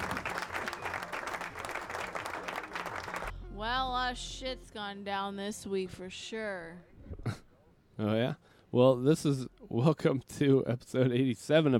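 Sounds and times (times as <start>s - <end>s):
crowd cheering and applauding: 0.0s - 3.3s
speech: 3.6s - 7.4s, 8.0s - 11.7s.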